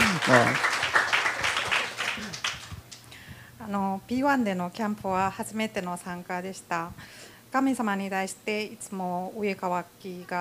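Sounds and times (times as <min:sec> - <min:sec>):
crowd clapping: 0:00.0 - 0:03.1
speech: 0:00.3 - 0:00.7, 0:03.7 - 0:10.3.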